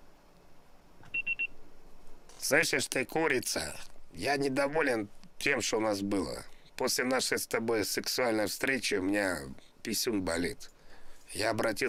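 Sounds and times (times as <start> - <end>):
voicemail beep before recording message: 1.1 - 1.6
speech: 2.5 - 10.7, 11.3 - 11.8.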